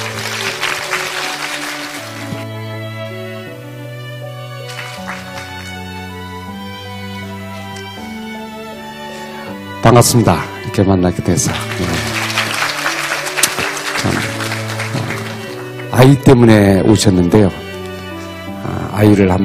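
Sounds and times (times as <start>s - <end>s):
audience applause welcoming a speaker: 0.0s - 2.8s, 4.4s - 6.1s, 11.2s - 16.5s
instrumental music: 0.0s - 19.4s
speech: 9.9s - 12.2s, 16.0s - 17.6s, 19.0s - 19.4s.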